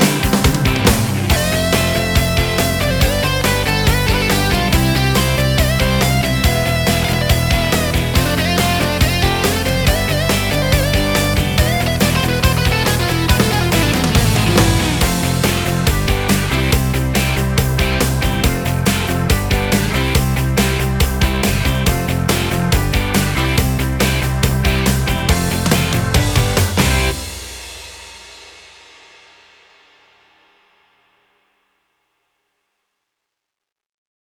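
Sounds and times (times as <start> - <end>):
Yamaha keyboard accompaniment style: 0.0 - 27.3.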